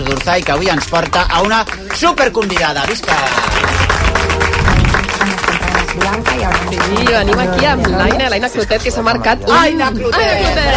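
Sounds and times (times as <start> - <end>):
audience applause: 0.0 - 8.3
speech: 0.1 - 4.0, 6.0 - 10.7.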